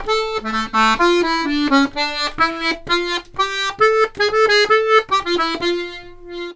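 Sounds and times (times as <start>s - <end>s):
accordions: 0.0s - 6.5s.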